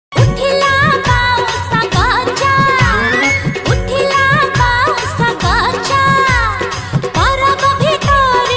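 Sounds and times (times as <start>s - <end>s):
Odia song: 0.2s - 8.4s.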